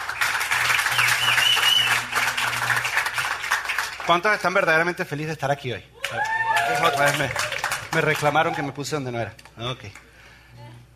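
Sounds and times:
audience applauding: 0.0 - 4.8, 6.0 - 9.0
speech: 4.1 - 10.6.

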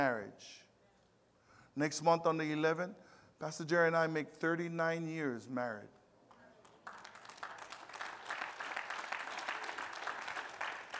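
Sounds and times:
speech: 0.0 - 0.6, 1.8 - 6.0
audience applauding: 6.5 - 10.9.

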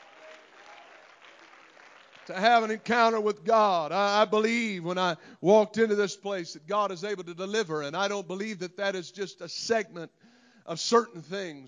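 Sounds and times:
audience clapping hands in praise: 0.0 - 3.2
speech: 2.3 - 11.6.

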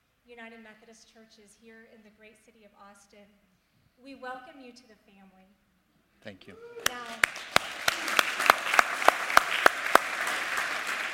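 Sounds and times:
speech: 0.3 - 5.6, 6.2 - 8.2
scattered applause: 6.6 - 11.1
audience clapping in rhythm at a United Methodist church welcome in Austin: 6.8 - 11.1.

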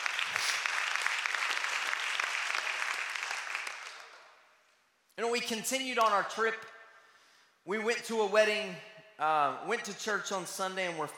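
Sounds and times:
audience clapping: 0.0 - 4.6
speech: 5.2 - 6.7, 7.7 - 11.1.

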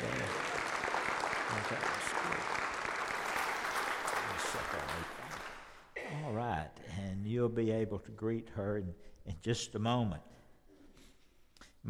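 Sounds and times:
audience applause: 0.0 - 5.8
speech: 4.6 - 5.3, 6.5 - 10.4.

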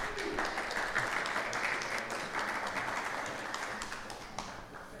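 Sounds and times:
audience round of applause: 0.0 - 4.9.

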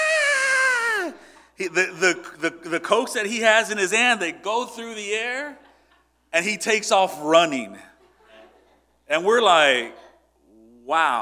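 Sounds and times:
person imitating a shrill high-pitched yell: 0.0 - 1.2
speech: 1.6 - 5.7, 6.3 - 7.9, 9.1 - 10.0, 10.9 - 11.2.

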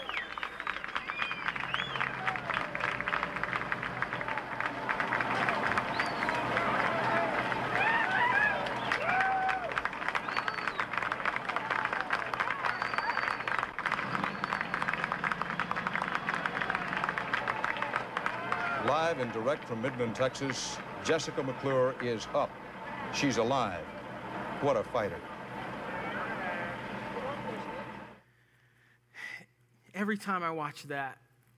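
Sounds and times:
crowd clapping: 0.0 - 28.2
speech: 19.3 - 24.0, 24.6 - 25.3, 30.1 - 31.2.

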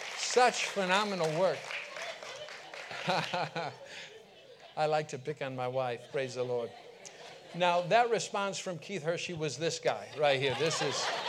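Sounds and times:
audience applause: 0.0 - 4.1
laughter: 0.2 - 8.7, 9.9 - 11.2
speech: 0.4 - 1.8, 3.1 - 4.1, 4.8 - 6.8, 7.5 - 11.2.

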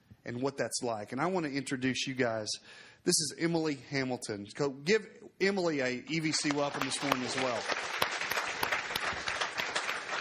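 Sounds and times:
speech: 0.2 - 8.2
audience clapping: 6.1 - 10.1.

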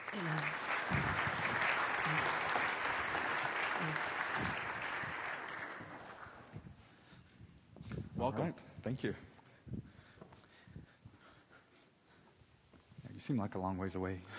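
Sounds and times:
church congregation applauding to welcome guests: 0.0 - 6.7
speech: 0.1 - 1.3, 8.3 - 9.3, 13.3 - 14.3.

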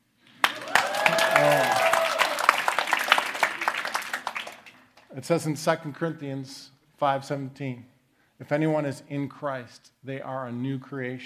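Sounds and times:
audience clapping: 0.2 - 5.1
speech: 5.2 - 11.2.

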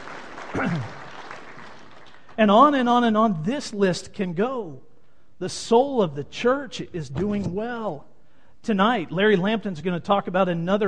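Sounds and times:
audience applause: 0.0 - 2.4
speech: 0.6 - 1.0, 2.4 - 10.8.

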